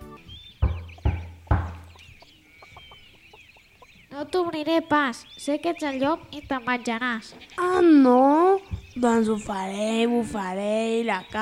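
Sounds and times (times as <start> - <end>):
knocking on a door: 0.6 - 2.0
speech: 4.2 - 11.4.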